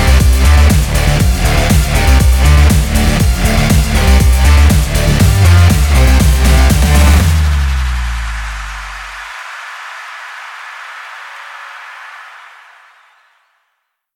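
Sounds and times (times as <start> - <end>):
electro sport rock music: 0.0 - 9.1.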